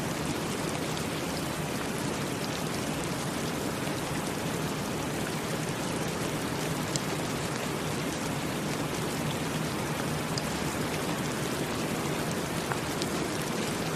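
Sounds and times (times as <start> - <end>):
steady dense rain: 0.0 - 13.9.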